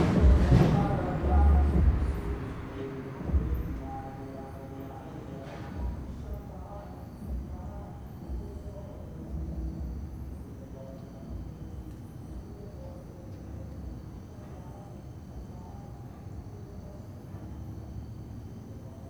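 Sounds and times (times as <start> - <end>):
car passing in an urban square: 0.0 - 6.8
music in an urban square: 0.0 - 10.7
crickets in a town square at night: 0.0 - 19.0.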